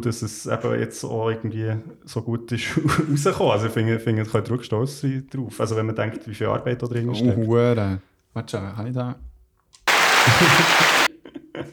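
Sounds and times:
speech: 0.0 - 9.3, 10.3 - 10.8
applause: 9.9 - 11.1
laughter: 10.0 - 11.7.

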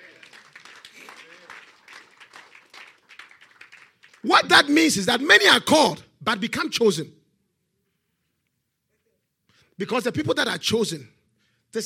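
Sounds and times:
audience clapping: 0.0 - 4.6
speech: 4.2 - 7.2, 9.8 - 11.8.

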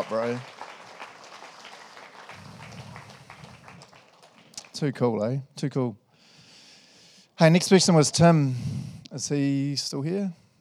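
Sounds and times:
speech: 0.0 - 0.6, 4.8 - 6.0, 7.4 - 10.4
audience clapping: 0.0 - 5.3.

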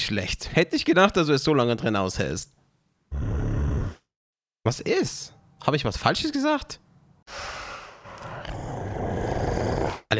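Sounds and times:
speech: 0.0 - 3.5, 4.7 - 7.6
heavy snorting: 3.1 - 4.1, 7.4 - 10.1
monster growling: 3.1 - 4.1, 7.8 - 10.1.

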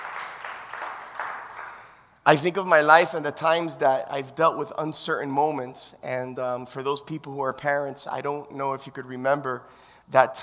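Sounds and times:
audience clapping: 0.0 - 2.1
speech: 2.3 - 10.4.

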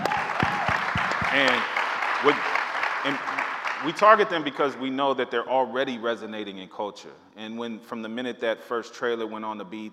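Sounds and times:
short vocal cheer: 0.0 - 3.8
audience clapping: 0.0 - 4.8
speech: 1.4 - 9.9.

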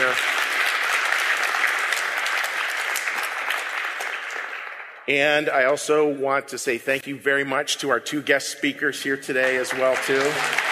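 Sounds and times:
audience applause: 0.0 - 5.5, 9.4 - 10.7
speech: 5.1 - 10.7.

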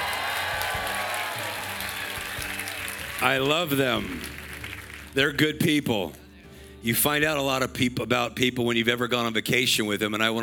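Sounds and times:
audience clapping: 0.0 - 5.4
speech: 3.2 - 4.4, 5.2 - 6.2, 6.8 - 10.4.

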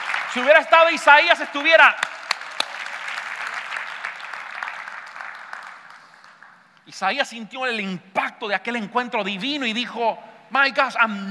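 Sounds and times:
audience applause: 0.0 - 6.6
speech: 0.4 - 2.1, 6.9 - 11.2.

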